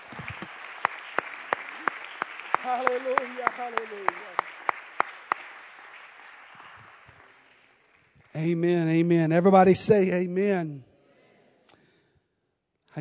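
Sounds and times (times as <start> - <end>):
audience clapping hands: 0.0 - 9.5
speech: 2.6 - 4.4, 8.4 - 10.9.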